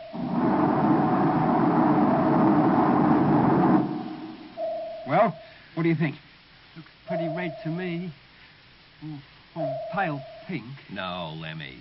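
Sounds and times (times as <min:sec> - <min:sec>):
spaceship rocket motors firing: 0:00.0 - 0:04.6
speech: 0:05.2 - 0:08.2, 0:09.0 - 0:11.7.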